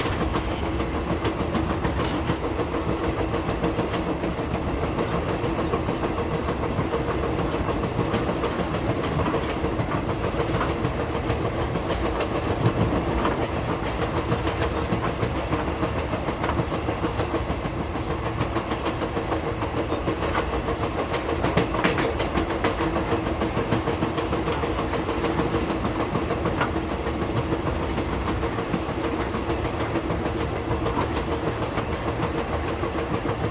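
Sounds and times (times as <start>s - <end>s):
train carriage corridor ambience: 0.0s - 33.4s.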